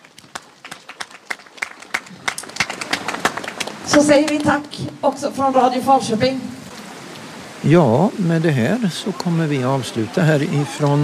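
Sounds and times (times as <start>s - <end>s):
audience applause outdoors: 0.0s - 4.8s, 8.4s - 11.0s
speech: 3.9s - 6.5s, 7.6s - 11.0s.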